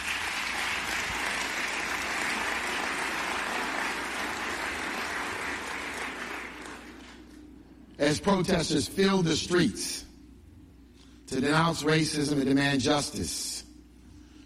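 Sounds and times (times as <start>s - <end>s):
audience applause: 0.0s - 7.2s
speech: 8.1s - 10.1s, 11.3s - 13.5s.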